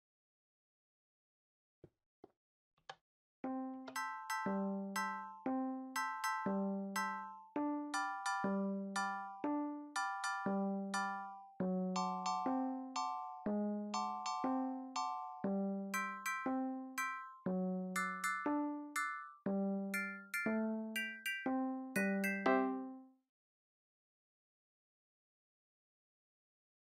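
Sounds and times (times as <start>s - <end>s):
iPhone ringtone: 3.9s - 5.4s, 6.0s - 22.9s.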